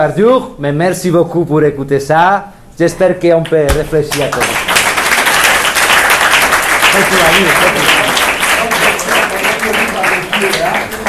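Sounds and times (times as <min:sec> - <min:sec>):
speech: 0:00.0 - 0:04.7, 0:07.0 - 0:08.0
audience applause: 0:04.1 - 0:11.0.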